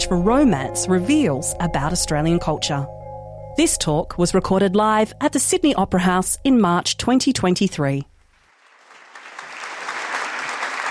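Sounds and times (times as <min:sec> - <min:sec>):
speech: 0:00.0 - 0:03.0, 0:03.6 - 0:08.1
large crowd applauding panelists walking on stage at the Sydney Opera House: 0:08.5 - 0:10.8.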